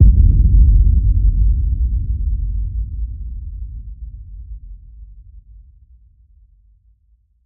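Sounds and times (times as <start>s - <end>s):
boom: 0.0s - 3.7s.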